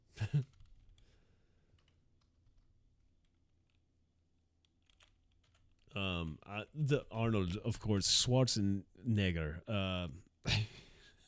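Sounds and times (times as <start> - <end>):
computer keyboard typing: 0.4 - 3.9, 4.6 - 6.0
speech: 6.0 - 10.6.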